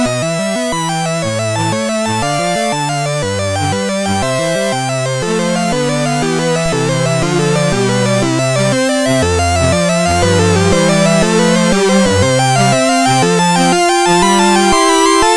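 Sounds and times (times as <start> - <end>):
gigue dance music: 0.1 - 15.3.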